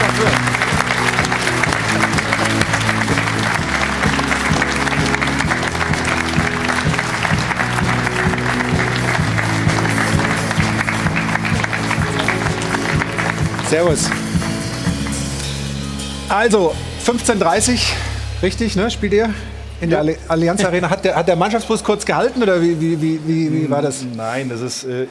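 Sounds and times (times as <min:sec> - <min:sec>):
studio audience applause: 0:00.0 - 0:16.2
speech: 0:13.7 - 0:14.3, 0:16.3 - 0:25.0.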